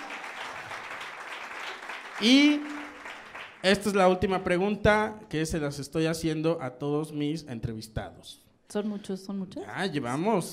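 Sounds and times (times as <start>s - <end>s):
audience applause: 0.0s - 4.0s
speech: 2.2s - 2.7s, 3.6s - 10.5s.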